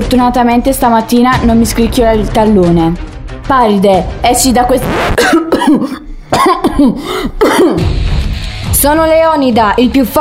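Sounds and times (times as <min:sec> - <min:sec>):
speech: 0:00.1 - 0:08.0, 0:08.8 - 0:10.2
coughing fit: 0:05.1 - 0:08.0.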